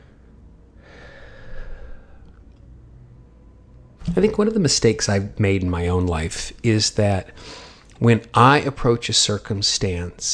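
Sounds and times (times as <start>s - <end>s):
deep breath taken slowly: 0.0s - 2.4s, 7.4s - 7.9s
speech: 4.1s - 10.3s.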